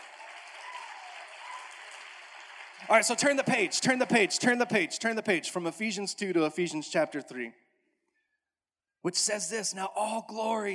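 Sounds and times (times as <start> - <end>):
church congregation clapping during a sermon: 0.0 - 6.0
speech: 2.8 - 7.6, 9.0 - 10.7.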